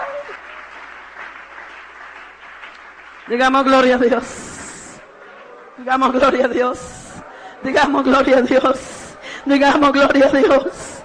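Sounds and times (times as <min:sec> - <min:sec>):
audience applause: 0:00.0 - 0:07.4
speech: 0:03.3 - 0:04.5, 0:05.8 - 0:07.0, 0:07.6 - 0:10.8.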